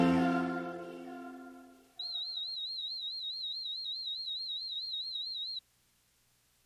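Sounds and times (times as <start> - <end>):
high-pitched test beep tone: 2.0 - 5.6.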